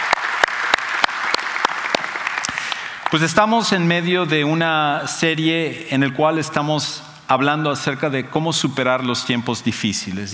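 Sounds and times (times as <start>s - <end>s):
audience applause: 0.0s - 3.2s
rhythmic claps: 0.0s - 3.4s
speech: 3.1s - 10.3s.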